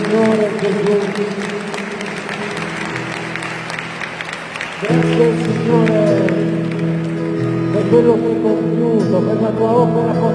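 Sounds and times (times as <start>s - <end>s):
audience applause: 0.0s - 8.1s
speech: 0.1s - 1.7s, 4.8s - 6.4s, 7.9s - 10.3s.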